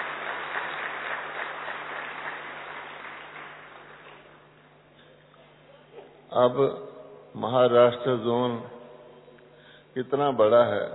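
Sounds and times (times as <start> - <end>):
audience applause: 0.0 - 4.4
speech: 6.3 - 8.8, 10.0 - 10.9.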